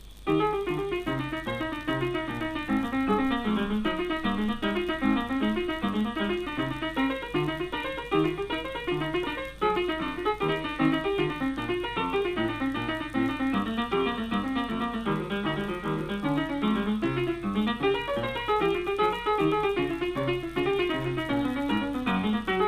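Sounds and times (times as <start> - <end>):
toccata and fugue: 0.2 - 22.6.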